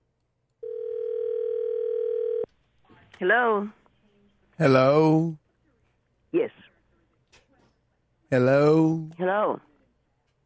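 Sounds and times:
telephone ring tone on a call: 0.6 - 2.5
speech: 3.2 - 3.8, 4.6 - 5.4, 6.3 - 6.6, 8.3 - 9.7.

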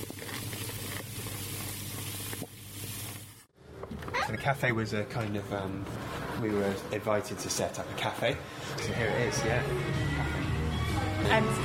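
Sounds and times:
brew bubbling: 0.0 - 3.5
speech: 4.3 - 10.4, 11.2 - 11.6.

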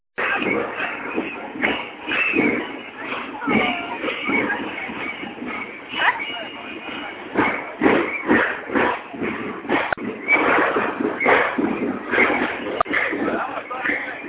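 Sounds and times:
samba music: 0.2 - 14.2.

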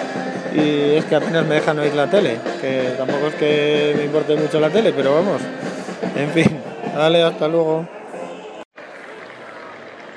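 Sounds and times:
speech: 0.5 - 8.0
crowd applauding: 8.2 - 10.1.

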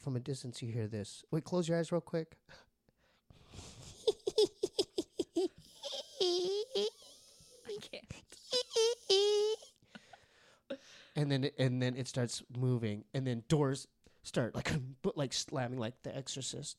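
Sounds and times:
speech: 0.0 - 2.7, 11.2 - 16.7
voice imitating a witch's cackle: 3.8 - 9.7.

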